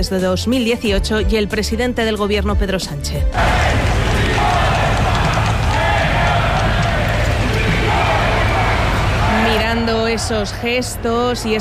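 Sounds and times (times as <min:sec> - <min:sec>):
speech: 0:00.0 - 0:04.8, 0:09.8 - 0:11.6
large crowd applauding and cheering the Spanish king and queen: 0:03.4 - 0:11.6.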